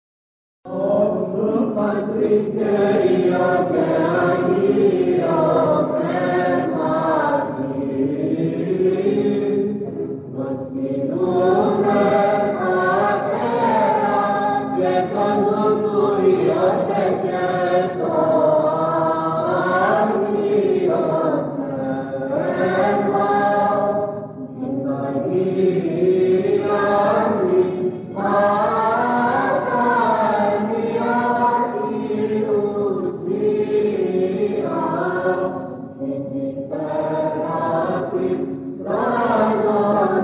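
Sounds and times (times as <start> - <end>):
choir singing: 0.7 - 40.2.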